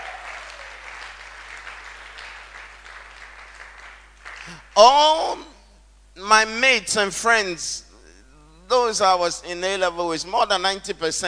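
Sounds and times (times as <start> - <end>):
crowd clapping: 0.0 - 4.8
speech: 4.5 - 5.5, 6.2 - 7.9, 8.7 - 11.2.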